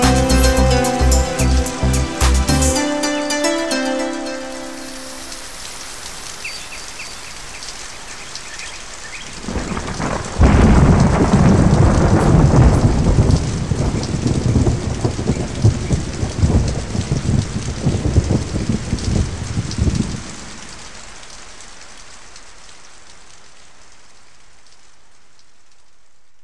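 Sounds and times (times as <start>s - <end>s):
meditation music: 0.0s - 5.9s
African rain: 0.0s - 26.4s.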